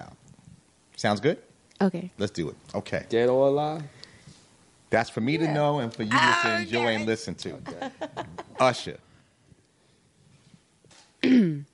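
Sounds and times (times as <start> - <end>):
speech: 1.0 - 4.0, 4.9 - 9.0
laughter: 7.6 - 8.8
throat clearing: 11.2 - 11.7.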